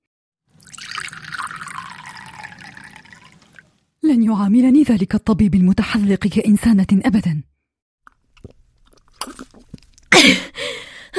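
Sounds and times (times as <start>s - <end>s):
wine poured from a bottle into a glass: 0.5s - 3.7s
speech: 4.1s - 7.5s.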